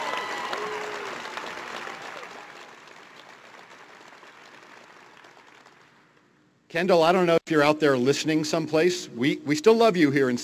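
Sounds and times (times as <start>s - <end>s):
audience applause: 0.0s - 6.0s
speech: 6.7s - 10.4s.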